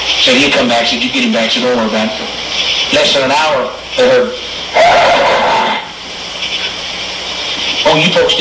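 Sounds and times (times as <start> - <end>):
speech: 0.2 - 5.3, 7.9 - 8.3
horse neighing: 4.8 - 5.9.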